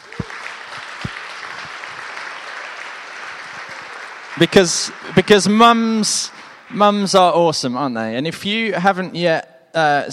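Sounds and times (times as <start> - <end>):
audience applause: 0.0 - 6.6
speech: 4.4 - 10.1.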